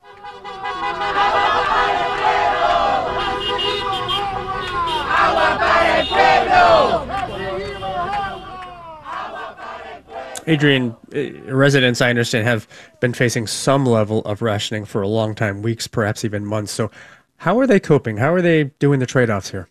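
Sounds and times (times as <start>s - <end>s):
car horns honking: 0.0s - 11.9s
large protest crowd shouting and chanting: 0.0s - 11.9s
speech: 10.5s - 19.7s.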